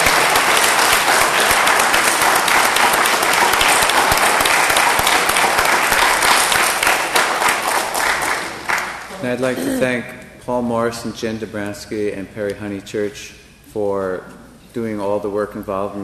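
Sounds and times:
audience round of applause: 0.0 - 9.1
speech: 9.3 - 16.0.

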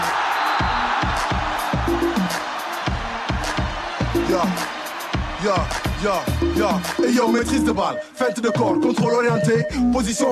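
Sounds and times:
stadium crowd cheering: 0.0 - 7.9
speech: 4.3 - 4.8, 5.4 - 10.2.

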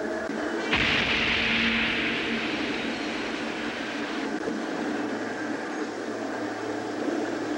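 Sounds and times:
low rumbling: 0.2 - 7.5
car bomb explosion: 0.6 - 6.0.

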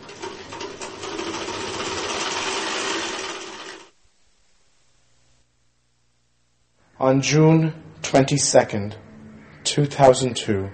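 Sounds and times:
sewing machine running: 0.0 - 3.9
speech: 7.0 - 9.0, 9.8 - 10.7.

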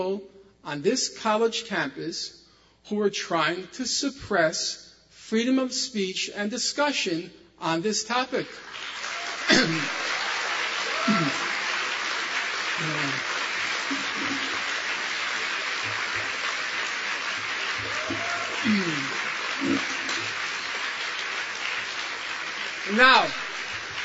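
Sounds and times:
speech: 0.0 - 10.0, 23.0 - 23.4
crowd booing: 9.0 - 22.2
coughs: 9.4 - 10.1, 11.0 - 11.7, 12.8 - 14.7, 18.1 - 20.4
occasional shouts: 10.9 - 11.5, 17.9 - 20.0.

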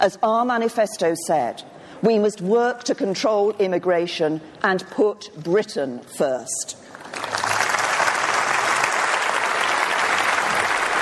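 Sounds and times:
speech: 0.0 - 7.3
audience applause: 7.0 - 10.9.

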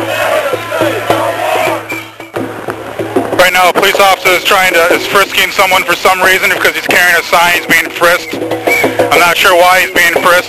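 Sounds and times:
street protest crowd chanting: 0.0 - 2.3
speech: 3.6 - 10.4.

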